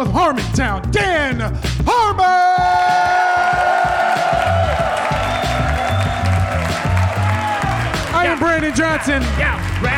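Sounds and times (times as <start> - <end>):
speech: 0.0 - 3.0, 8.2 - 9.9
audience cheering and clapping: 2.2 - 9.9.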